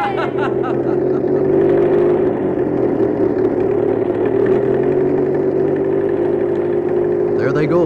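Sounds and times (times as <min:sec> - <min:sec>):
laughter: 0:00.0 - 0:01.7
old car engine driving up an old mountain road: 0:00.0 - 0:07.8.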